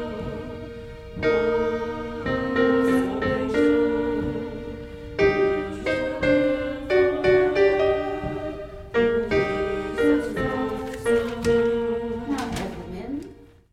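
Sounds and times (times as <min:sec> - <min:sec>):
soprano voice singing: 0:00.0 - 0:13.6.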